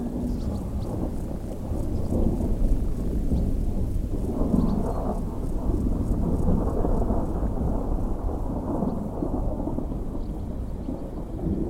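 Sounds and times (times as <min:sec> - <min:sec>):
soft rain: 0:00.0 - 0:11.6
thunderstorm rumbling: 0:00.0 - 0:11.6.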